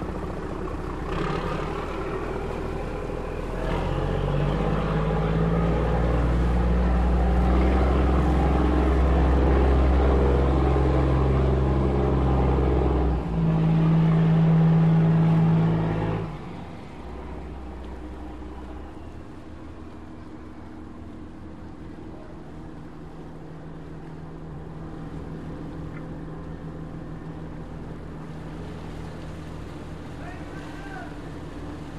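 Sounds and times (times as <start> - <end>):
harbor ambience: 0.0 - 31.9.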